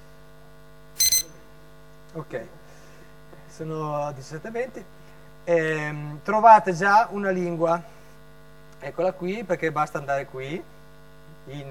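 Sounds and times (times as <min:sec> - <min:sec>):
alarm clock beeping: 0:01.0 - 0:01.3
quiet hum: 0:01.0 - 0:01.4
speech: 0:02.1 - 0:02.8, 0:03.5 - 0:08.0, 0:08.8 - 0:10.7, 0:11.4 - 0:11.7.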